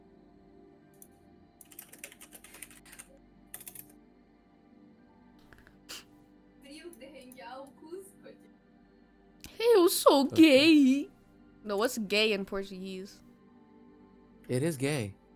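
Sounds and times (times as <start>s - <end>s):
typing a sentence on a computer keyboard: 1.0s - 3.9s
speech: 9.9s - 13.2s, 14.5s - 15.2s.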